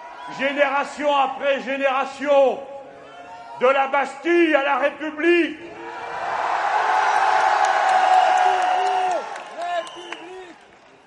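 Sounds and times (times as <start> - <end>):
speech: 0.3 - 2.7, 3.6 - 5.7
large crowd roaring and cheering: 5.6 - 10.8
scattered whoops and shouts: 6.8 - 10.6.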